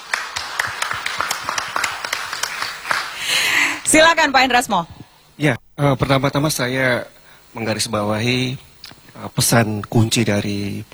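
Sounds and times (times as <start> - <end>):
audience applause: 0.0 - 4.1
speech: 3.9 - 10.9.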